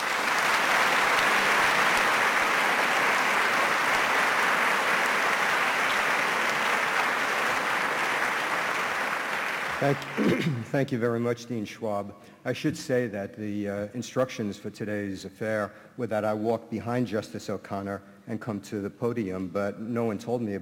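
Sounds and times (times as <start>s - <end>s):
audience applause welcoming a speaker at a formal event: 0.0s - 10.7s
speech: 9.8s - 20.6s.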